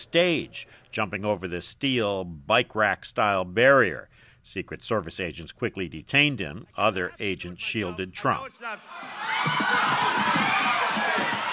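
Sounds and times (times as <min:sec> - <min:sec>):
speech: 0:00.0 - 0:11.4
rally crowd cheering: 0:07.7 - 0:11.5.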